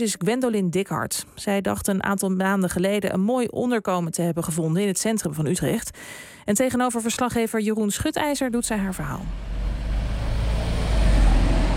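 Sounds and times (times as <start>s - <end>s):
speech: 0.0s - 9.6s
street traffic in Utrecht: 8.6s - 11.7s.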